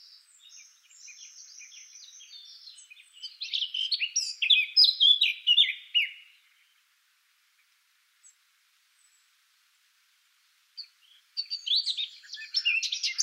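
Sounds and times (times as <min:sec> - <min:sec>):
Eurasian blackcap Sylvia atricapilla singing: 0:00.0 - 0:06.4, 0:10.8 - 0:13.2.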